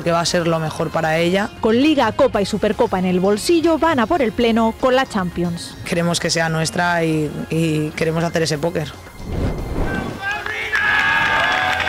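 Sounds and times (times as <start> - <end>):
speech: 0.0 - 9.5
teammates clapping and cheering: 9.9 - 11.8.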